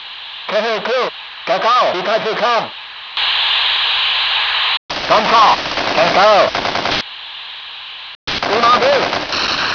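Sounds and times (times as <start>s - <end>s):
radio: 0.5s - 3.6s, 4.9s - 7.0s, 8.3s - 9.6s.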